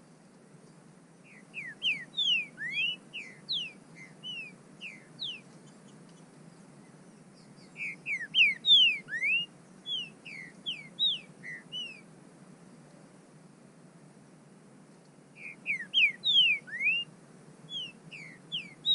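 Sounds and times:
bird whistling calls: 0:01.2 - 0:06.2, 0:06.9 - 0:12.1, 0:15.4 - 0:17.1, 0:17.7 - 0:18.9.

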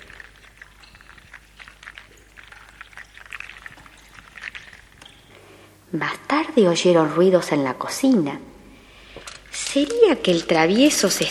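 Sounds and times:
bath water pouring and splashing: 0:00.0 - 0:05.5
speech: 0:05.9 - 0:08.5, 0:09.8 - 0:11.3.

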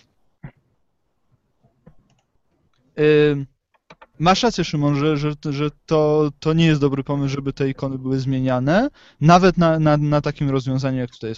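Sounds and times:
speech: 0:03.0 - 0:03.5, 0:04.2 - 0:11.3
computer mouse clicking: 0:03.7 - 0:04.2.

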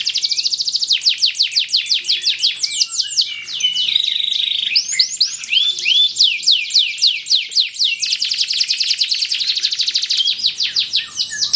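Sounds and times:
canary singing: 0:00.0 - 0:11.5.

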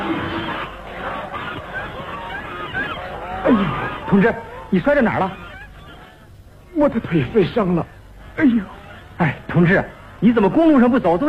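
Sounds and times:
flock of white geese honking and cackling: 0:00.0 - 0:11.2
laughter: 0:00.0 - 0:11.2
speech: 0:03.4 - 0:05.4, 0:06.8 - 0:11.2.

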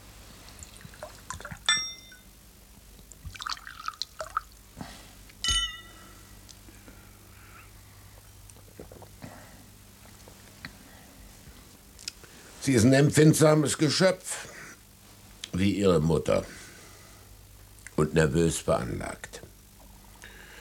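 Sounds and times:
sherry pouring: 0:00.5 - 0:01.7, 0:03.3 - 0:04.6
glasses clinking: 0:01.6 - 0:02.3, 0:05.4 - 0:06.2
speech: 0:12.7 - 0:14.5, 0:15.6 - 0:16.6, 0:18.0 - 0:19.4.

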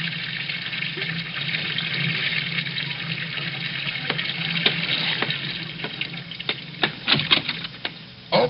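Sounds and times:
bathtub being filled from running tap: 0:00.6 - 0:08.0.

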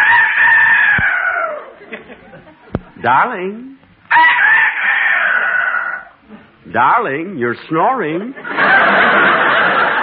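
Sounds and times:
rooster crowing in the early morning: 0:00.0 - 0:01.8, 0:04.1 - 0:06.2
laughter: 0:01.4 - 0:03.0, 0:08.4 - 0:10.0
speech: 0:03.0 - 0:04.4, 0:06.7 - 0:09.3.

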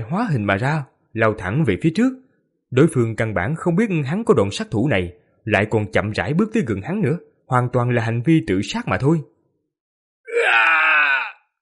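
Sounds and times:
speech: 0:00.1 - 0:09.3
man's agonized scream of pain: 0:10.3 - 0:11.5.

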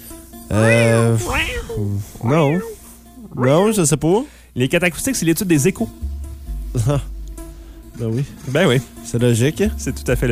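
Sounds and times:
person imitating cat meows: 0:00.5 - 0:02.8
speech: 0:00.6 - 0:02.8, 0:03.4 - 0:06.1, 0:06.7 - 0:07.2, 0:08.0 - 0:10.2.

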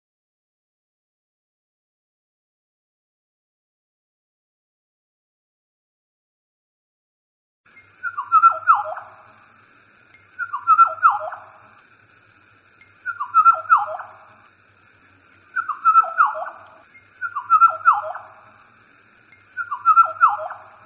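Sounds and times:
oriole fluting whistled song phrases: 0:08.0 - 0:09.1, 0:10.4 - 0:11.5, 0:13.0 - 0:14.2, 0:15.6 - 0:18.3, 0:19.6 - 0:20.8.

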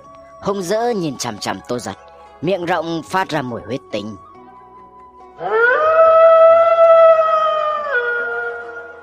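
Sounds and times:
speech: 0:00.4 - 0:04.3, 0:05.4 - 0:05.7
black wolf howling: 0:05.4 - 0:09.0.

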